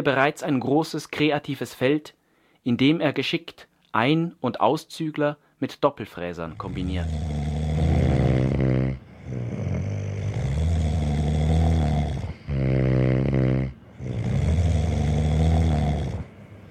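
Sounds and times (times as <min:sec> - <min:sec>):
speech: 0:00.0 - 0:07.4
loud snoring: 0:06.4 - 0:16.7.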